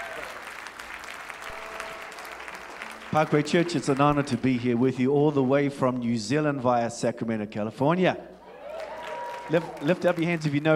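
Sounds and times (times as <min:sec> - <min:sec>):
church audience clapping to welcome guest speakers: 0:00.0 - 0:06.2, 0:08.6 - 0:10.7
speech: 0:03.1 - 0:08.3, 0:09.5 - 0:10.7.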